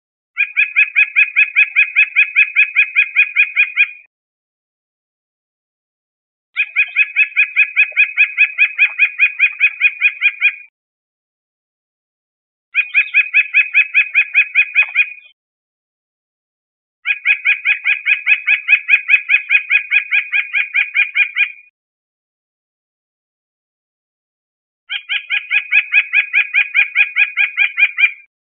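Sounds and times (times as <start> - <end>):
white-breasted nuthatch nasal calls: 0.4 - 4.1, 6.6 - 10.7, 12.8 - 15.3, 17.0 - 21.7, 24.9 - 28.3.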